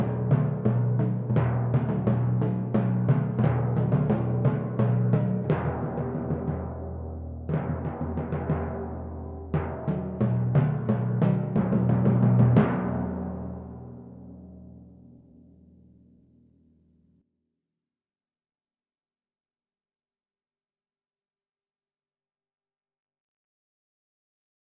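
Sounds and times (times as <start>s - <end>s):
timpani: 0.0s - 15.2s.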